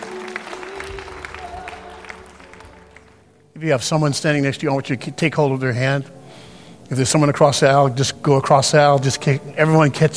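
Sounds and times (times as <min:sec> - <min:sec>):
audience applause: 0:00.0 - 0:03.4
speech: 0:03.6 - 0:06.2, 0:06.9 - 0:10.1.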